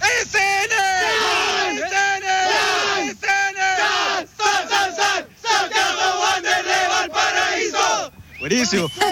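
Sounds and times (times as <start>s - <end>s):
fans shouting a team chant live: 0.0s - 8.1s
speech: 8.5s - 9.1s.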